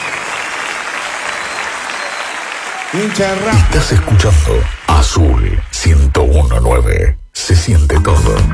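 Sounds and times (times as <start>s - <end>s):
crowd applause: 0.0s - 6.4s
speech: 2.9s - 8.5s.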